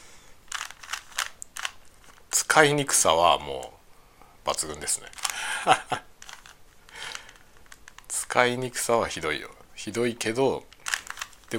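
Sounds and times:
clicking of a cube puzzle being turned: 0:00.5 - 0:02.3, 0:04.5 - 0:05.4, 0:06.2 - 0:08.1, 0:10.6 - 0:11.5
speech: 0:02.6 - 0:03.8, 0:04.4 - 0:06.1, 0:08.4 - 0:10.7
laughter: 0:05.3 - 0:06.1.

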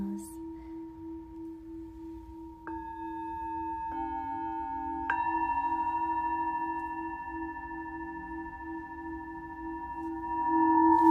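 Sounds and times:
singing bowl humming and struck: 0:00.0 - 0:11.1.

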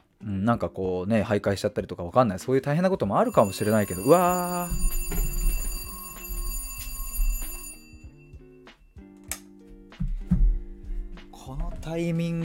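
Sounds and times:
speech: 0:00.4 - 0:05.3, 0:11.9 - 0:12.4
alarm clock melodic electronic tune: 0:03.2 - 0:08.7.

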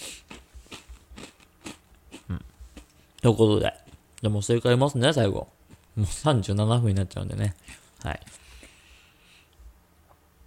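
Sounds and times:
Happy Turn rice crackers crunching while being chewed: 0:00.2 - 0:03.0
speech: 0:03.2 - 0:08.4.

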